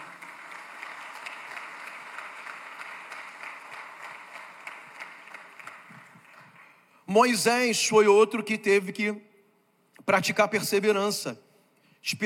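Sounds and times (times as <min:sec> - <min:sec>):
audience applause: 0:00.0 - 0:06.8
speech: 0:07.1 - 0:09.3, 0:10.1 - 0:12.2.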